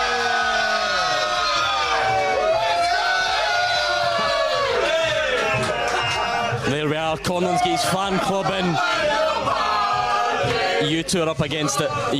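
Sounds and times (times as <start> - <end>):
audience applause: 0.0 - 6.7
audience cheering: 0.0 - 10.8
speech: 7.1 - 9.7, 10.8 - 12.1.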